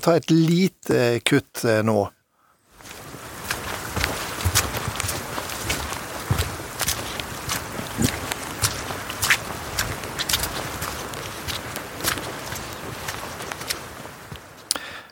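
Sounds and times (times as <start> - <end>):
footsteps on a mountain hike in Aurlandsdalen: 0.0 - 1.1, 2.7 - 15.0
speech: 0.0 - 2.2.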